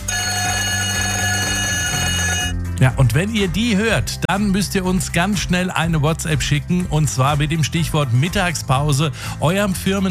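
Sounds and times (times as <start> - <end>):
school-style break bell ringing with a rattling clapper: 0.0 - 2.6
speech: 2.8 - 10.0.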